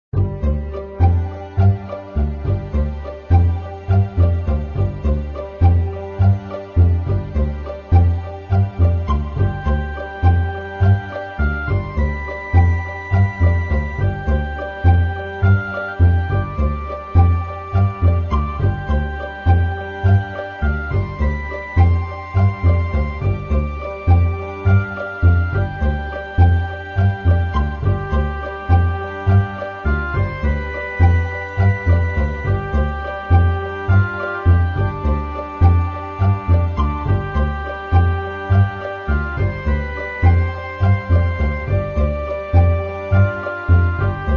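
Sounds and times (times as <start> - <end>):
game menu music: 0.2 - 44.3.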